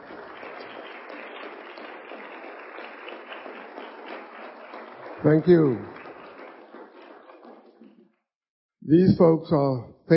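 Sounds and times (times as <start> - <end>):
round of applause: 0.0 - 8.1
speech: 5.2 - 5.9, 8.9 - 10.1.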